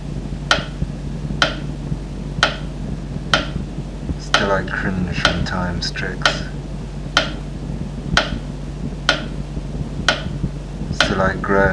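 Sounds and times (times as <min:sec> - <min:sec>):
low constant hum: 0:00.0 - 0:11.7
clock ticking: 0:00.5 - 0:00.8, 0:01.4 - 0:01.7, 0:02.4 - 0:02.7, 0:03.3 - 0:03.6, 0:04.2 - 0:05.6, 0:06.2 - 0:06.5, 0:07.1 - 0:07.4, 0:08.1 - 0:08.4, 0:09.1 - 0:09.4, 0:10.0 - 0:11.4
speech: 0:04.5 - 0:06.6, 0:11.2 - 0:11.7.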